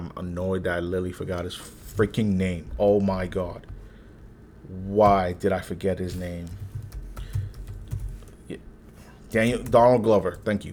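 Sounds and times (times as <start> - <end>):
speech: 0.2 - 3.7, 4.6 - 6.6, 9.3 - 10.7
faint typing on a computer keyboard: 6.0 - 8.6, 9.3 - 10.5.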